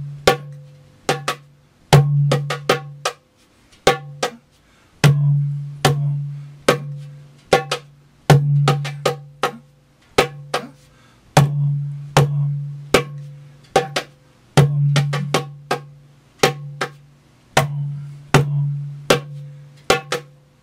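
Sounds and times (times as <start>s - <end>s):
doumbek and djembe drums: 0.0s - 20.5s.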